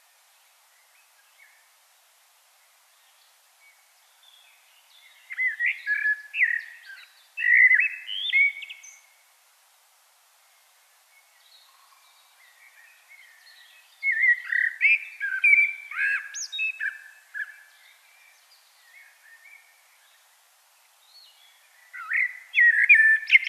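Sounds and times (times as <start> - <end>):
common blackbird singing: 4.2 - 9.1, 11.3 - 19.8, 21.1 - 23.4.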